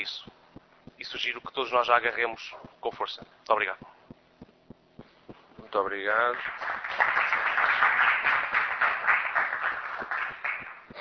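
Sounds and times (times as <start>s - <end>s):
speech: 0.0s - 0.3s, 1.0s - 3.9s, 5.7s - 6.8s
audience applause: 6.1s - 11.0s.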